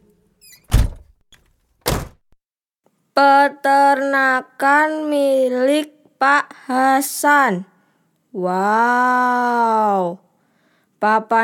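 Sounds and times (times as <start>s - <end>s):
faint high squeak: 0.4s - 0.7s
car door slamming: 0.7s - 1.1s, 1.8s - 2.2s
speech: 3.2s - 7.7s, 8.4s - 10.2s, 11.0s - 11.4s.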